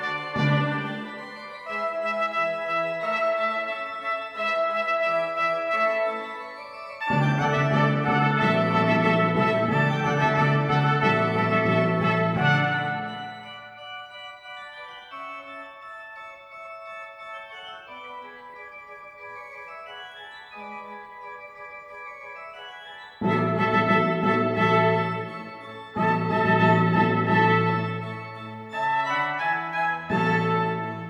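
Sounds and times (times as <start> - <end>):
trumpet ensemble: 0.0 - 14.0, 23.2 - 31.0.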